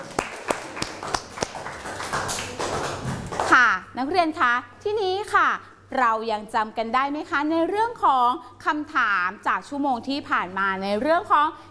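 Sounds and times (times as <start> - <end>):
classroom applause: 0.0 - 3.6
speech: 4.0 - 11.6.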